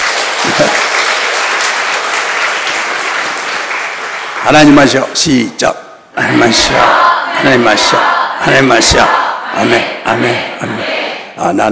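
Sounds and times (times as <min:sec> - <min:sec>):
audience clapping hands: 0:00.0 - 0:05.4
speech: 0:04.5 - 0:11.6.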